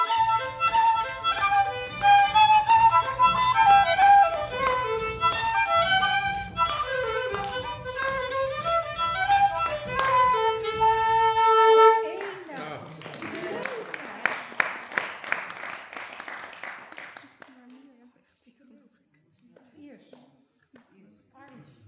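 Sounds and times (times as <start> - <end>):
square dance music: 0.0 - 12.5.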